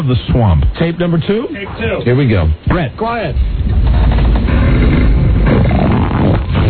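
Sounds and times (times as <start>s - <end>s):
speech: 0.0s - 4.9s
recorded fart played back: 3.6s - 6.6s.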